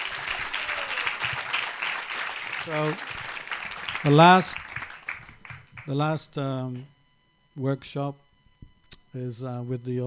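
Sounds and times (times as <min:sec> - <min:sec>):
audience applauding children who recited shlokas: 0:00.0 - 0:06.0
speech: 0:02.6 - 0:03.2, 0:04.0 - 0:04.6, 0:05.9 - 0:06.9, 0:07.6 - 0:08.2, 0:09.2 - 0:10.0.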